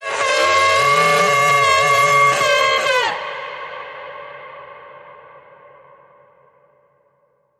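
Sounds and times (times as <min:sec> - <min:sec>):
banshee creature screaming: 0:00.1 - 0:03.3.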